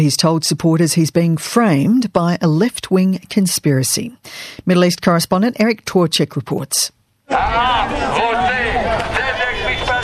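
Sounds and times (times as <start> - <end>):
speech: 0.0 - 9.2
large rowdy crowd chanting outside: 7.3 - 10.0.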